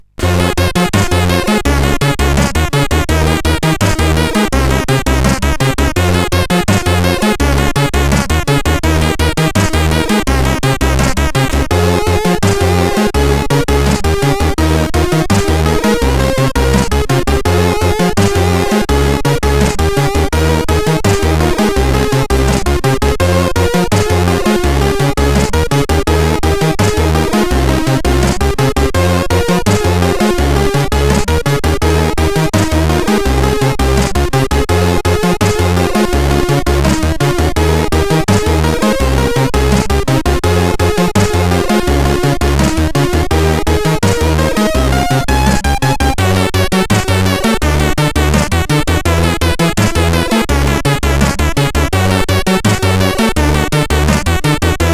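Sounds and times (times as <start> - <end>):
groovy SID CSG8580R5 chiptune music: 0.0 - 54.9.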